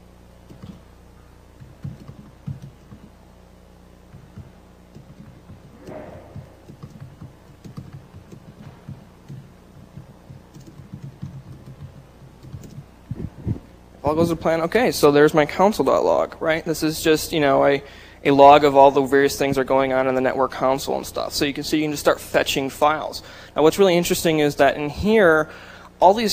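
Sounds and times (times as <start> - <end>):
typing on a computer keyboard: 0.5 - 0.8, 1.6 - 3.1, 4.1 - 12.9
speech: 14.1 - 26.3.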